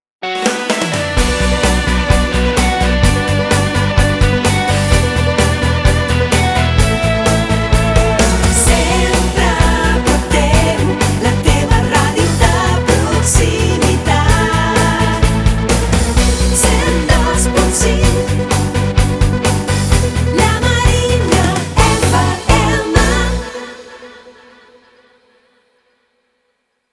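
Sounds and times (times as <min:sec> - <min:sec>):
rock music: 0:00.2 - 0:25.4.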